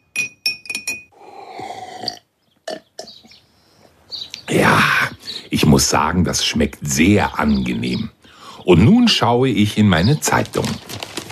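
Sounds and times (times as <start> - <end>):
spoon clinking against a glass while stirring hot water: 0.0 - 1.1
speech: 5.6 - 10.9.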